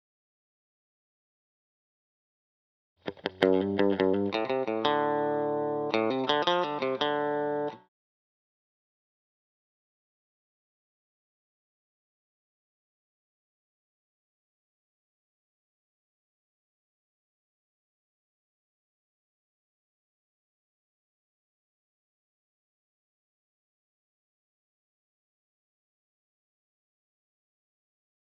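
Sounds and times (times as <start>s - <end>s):
electric guitar lead fill: 3.1s - 7.9s.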